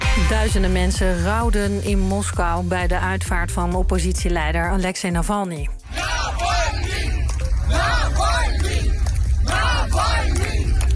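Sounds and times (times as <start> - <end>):
speech: 0.3 - 6.0
crowd chanting a name at funeral: 5.8 - 10.8.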